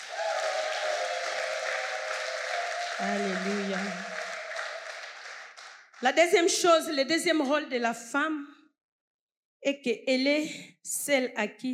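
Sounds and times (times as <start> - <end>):
church audience of women applauding and cheering: 0.0 - 6.4
speech: 3.0 - 4.1, 6.0 - 8.6, 9.6 - 11.7.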